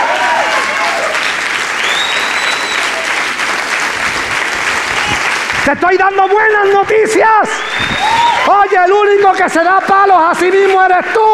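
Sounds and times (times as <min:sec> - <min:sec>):
faint cheering and whistles: 0:00.0 - 0:03.2, 0:07.4 - 0:09.0
audience applause: 0:00.0 - 0:06.9, 0:07.5 - 0:09.2
speech: 0:05.7 - 0:11.3.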